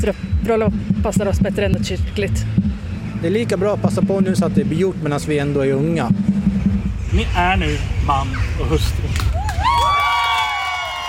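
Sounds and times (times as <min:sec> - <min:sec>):
speech: 0:00.0 - 0:06.3, 0:07.1 - 0:09.1
wedding guests in Västerås cheering for the newly married couple: 0:09.2 - 0:11.0.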